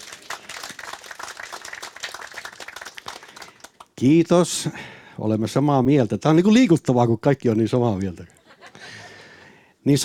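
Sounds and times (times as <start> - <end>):
audience applause: 0.0 - 3.8
speech: 4.0 - 8.4, 9.8 - 10.0.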